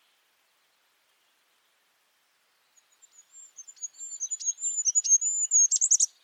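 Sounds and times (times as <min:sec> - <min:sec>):
high sharp bird chirps and thin whistles: 0:03.3 - 0:06.1.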